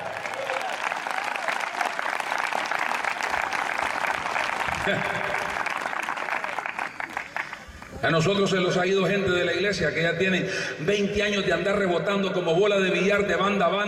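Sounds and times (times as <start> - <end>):
audience clapping: 0.0 - 8.0
speech: 4.8 - 5.3, 8.0 - 13.8.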